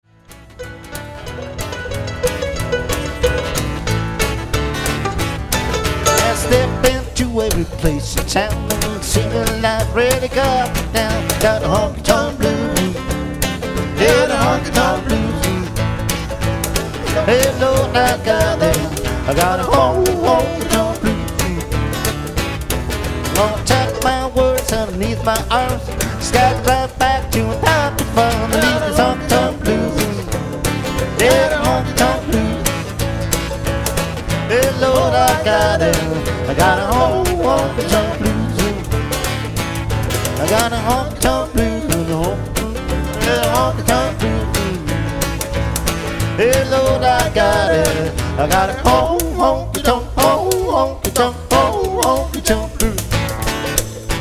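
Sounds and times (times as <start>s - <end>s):
honky-tonk blues music: 0.0s - 54.2s.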